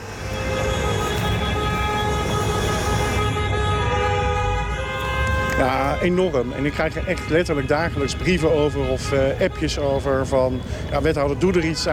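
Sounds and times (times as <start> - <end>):
engines roaring on a night out: 0.0 - 11.9
speech: 5.6 - 11.9.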